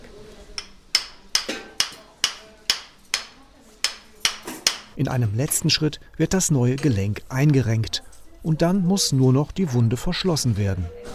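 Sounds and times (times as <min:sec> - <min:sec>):
surgical hammer striking metal implant: 0:00.6 - 0:05.0
speech: 0:05.0 - 0:11.1.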